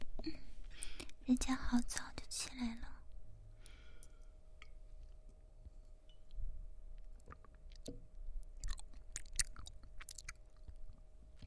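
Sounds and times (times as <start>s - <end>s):
speech: 0.2s - 0.4s, 1.3s - 2.9s
quiet chewing of homemade porridge: 4.0s - 11.4s.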